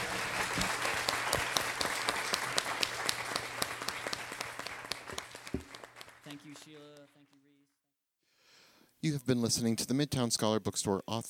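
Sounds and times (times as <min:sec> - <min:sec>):
audience applause: 0:00.0 - 0:07.3
speech: 0:09.1 - 0:11.2.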